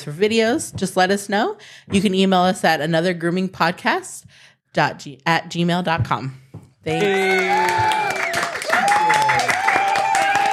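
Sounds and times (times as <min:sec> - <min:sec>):
speech: 0:00.0 - 0:08.0
round of applause: 0:06.9 - 0:10.5.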